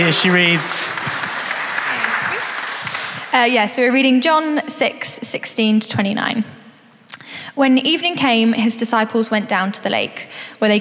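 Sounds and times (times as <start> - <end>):
speech: 0.0 - 1.2, 3.3 - 6.6, 7.6 - 10.7
audience clapping: 0.0 - 3.8.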